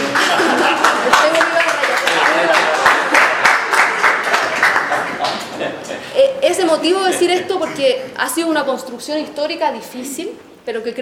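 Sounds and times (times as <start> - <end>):
audience applause: 0.0 - 6.0
laughter: 0.0 - 8.0
speech: 7.8 - 10.9.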